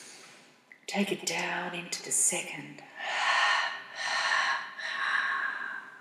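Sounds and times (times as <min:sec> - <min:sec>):
speech: 0:00.9 - 0:03.1
deep breathing during a guided breathing exercise: 0:03.0 - 0:05.9.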